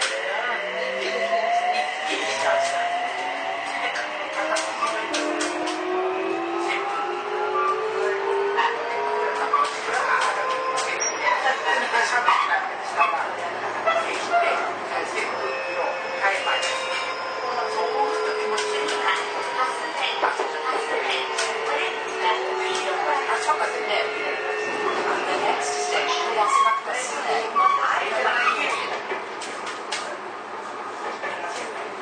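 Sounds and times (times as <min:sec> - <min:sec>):
Toei 6300 series train running: 0:00.0 - 0:32.0
whining train motor tones: 0:02.4 - 0:11.0, 0:15.2 - 0:28.0.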